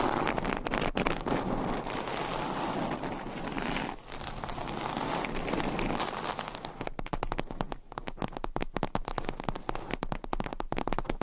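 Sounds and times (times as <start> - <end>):
scratching and tracing across a surface: 0.0 - 6.9
quick irregular taps and clicks: 6.7 - 11.2.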